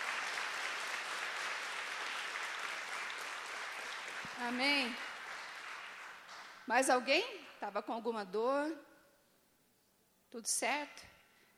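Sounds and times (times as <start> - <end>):
audience applause: 0.0 - 6.6
speech: 4.4 - 5.1, 6.7 - 8.9, 10.3 - 11.2.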